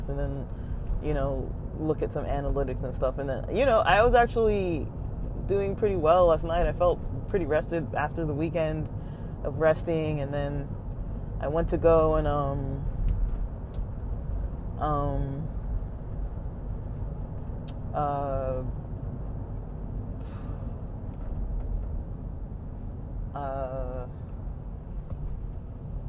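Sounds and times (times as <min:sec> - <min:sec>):
road rumble inside a car while driving: 0:00.0 - 0:26.0
speech: 0:00.1 - 0:10.8, 0:11.4 - 0:12.9, 0:14.8 - 0:15.4, 0:18.0 - 0:18.8, 0:23.4 - 0:24.3.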